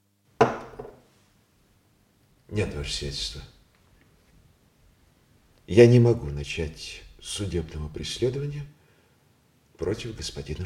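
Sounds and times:
wine glass with untouched wine set down on a table: 0.4s - 1.1s
speech: 2.5s - 3.6s, 5.7s - 8.8s, 9.8s - 10.6s.

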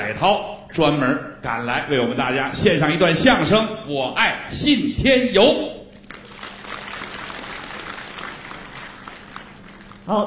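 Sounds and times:
speech: 0.1s - 5.8s, 10.1s - 10.2s
audience applause for crosstalk performers at a New Year comedy show: 6.0s - 10.2s.

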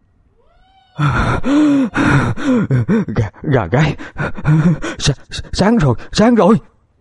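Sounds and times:
breathless panting after running: 1.0s - 6.3s
speech: 1.0s - 6.7s.

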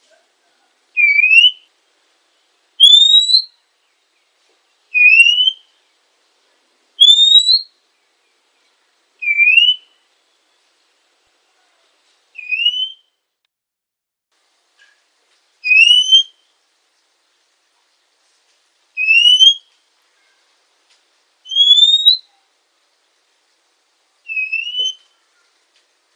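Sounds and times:
female Oriental magpie-robin whistled notes: 1.0s - 1.6s, 2.8s - 3.5s, 4.9s - 5.7s, 7.0s - 7.7s, 9.2s - 10.0s, 12.4s - 13.1s, 15.6s - 16.4s, 19.0s - 19.7s, 21.4s - 22.4s, 24.3s - 25.2s.

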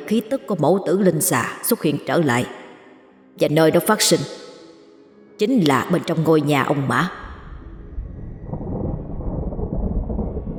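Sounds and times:
speech: 0.1s - 2.6s, 3.4s - 4.5s, 5.4s - 7.2s
sudden deep thunderclap outside: 7.2s - 10.5s.

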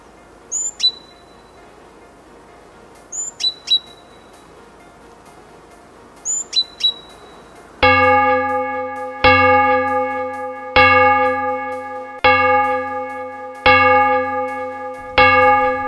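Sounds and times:
village church bells ringing: 7.8s - 15.8s.

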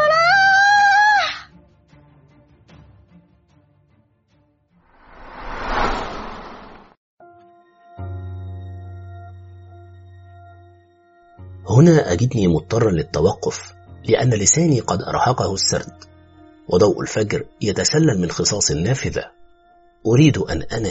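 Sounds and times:
woman's high piercing scream echoing through a locked room: 0.0s - 1.5s
rushing burst of noise: 5.0s - 7.0s
speech: 11.8s - 16.1s, 16.7s - 19.4s, 20.0s - 20.9s.

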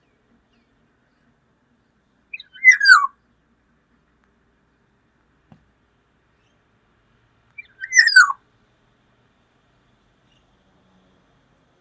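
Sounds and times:
Black-naped oriole calls: 2.3s - 3.1s, 7.6s - 8.4s.

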